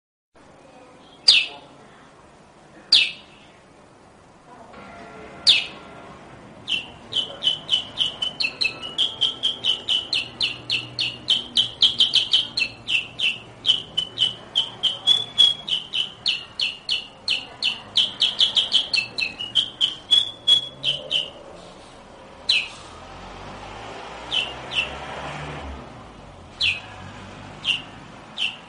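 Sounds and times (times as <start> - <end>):
sooty-headed bulbul chirping rapidly: 2.9 - 3.4, 5.5 - 5.8, 6.6 - 21.6, 22.4 - 22.9, 24.2 - 25.0, 26.6 - 27.0, 27.6 - 28.6.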